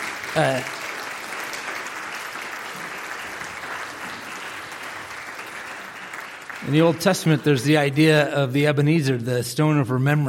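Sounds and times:
church congregation applauding the worship team during a service: 0:00.0 - 0:08.2
speech: 0:00.4 - 0:00.8, 0:06.6 - 0:10.2.

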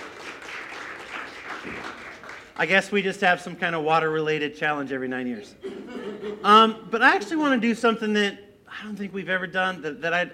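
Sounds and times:
crowd applause: 0:00.0 - 0:02.7
speech: 0:02.6 - 0:05.7, 0:06.4 - 0:10.3
laughter: 0:05.6 - 0:06.8.

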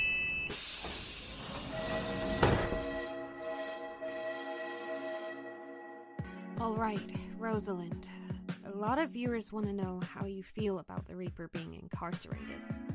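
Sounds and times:
train doors shutting with a pneumatic hiss and thud: 0:00.5 - 0:05.0
train motor whine with rhythmic hissing as the train pulls away: 0:00.5 - 0:05.6
speech: 0:06.7 - 0:08.2, 0:08.8 - 0:12.9.

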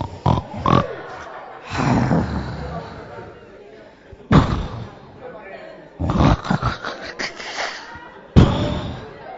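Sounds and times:
person imitating snoring: 0:00.0 - 0:03.0, 0:06.0 - 0:09.1
laughter: 0:00.0 - 0:09.3.

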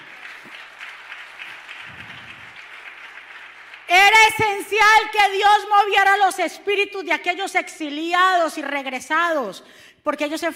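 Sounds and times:
audience applauding: 0:00.0 - 0:04.4
speech: 0:04.0 - 0:10.5.

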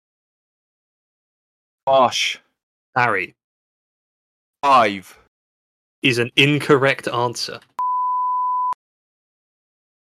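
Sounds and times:
speech: 0:01.9 - 0:02.4, 0:03.0 - 0:03.4, 0:04.6 - 0:05.2, 0:06.0 - 0:07.7
quiz buzzer beep: 0:07.8 - 0:08.8.

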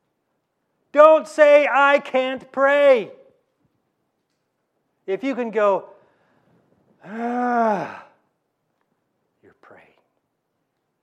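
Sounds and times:
speech: 0:00.9 - 0:03.2, 0:05.1 - 0:05.9, 0:07.0 - 0:08.0
human groan offered as a wordless prayer: 0:07.0 - 0:08.2.

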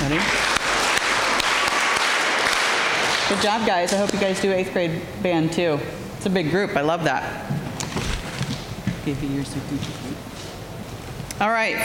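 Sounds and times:
group clapping together: 0:00.0 - 0:04.3
speech: 0:00.1 - 0:00.4, 0:03.3 - 0:07.6, 0:09.0 - 0:10.1, 0:11.4 - 0:11.8.

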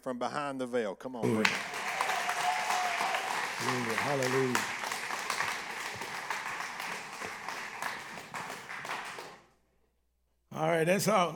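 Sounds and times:
speech: 0:00.0 - 0:01.8, 0:03.6 - 0:04.8, 0:10.6 - 0:11.3
audience applause: 0:01.2 - 0:09.4.

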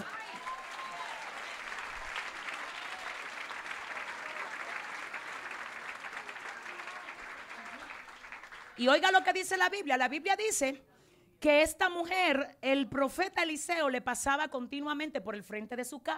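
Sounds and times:
audience applause: 0:00.0 - 0:09.2
speech: 0:08.8 - 0:16.1.

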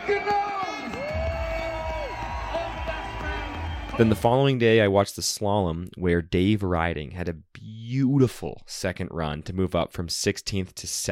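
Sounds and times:
audience applause and cheering: 0:00.0 - 0:04.5
speech: 0:00.1 - 0:00.6, 0:04.0 - 0:11.1.

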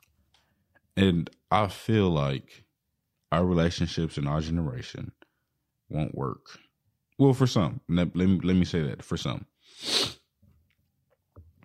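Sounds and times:
speech: 0:01.0 - 0:02.6, 0:03.3 - 0:05.2, 0:05.9 - 0:06.6, 0:07.2 - 0:10.2
person sniffling: 0:09.6 - 0:10.3.

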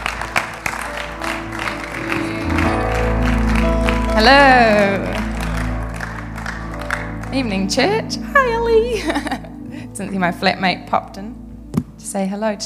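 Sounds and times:
audience round of applause: 0:00.0 - 0:08.2
speech: 0:04.2 - 0:05.1, 0:07.3 - 0:09.4, 0:10.0 - 0:11.4, 0:12.0 - 0:12.6.

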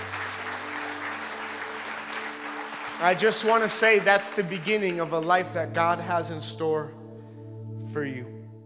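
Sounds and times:
church audience clapping: 0:00.0 - 0:05.7
speech: 0:03.0 - 0:07.0, 0:07.9 - 0:08.4.

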